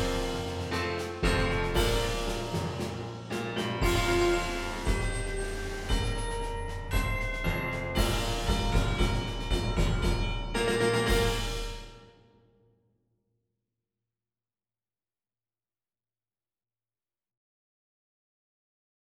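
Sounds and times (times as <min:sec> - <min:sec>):
piano: 0:00.0 - 0:12.1
percussion: 0:00.0 - 0:12.3.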